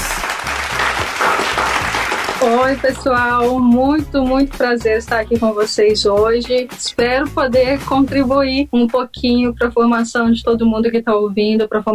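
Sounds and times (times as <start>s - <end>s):
crowd clapping: 0.0s - 3.6s
speech: 2.4s - 11.9s.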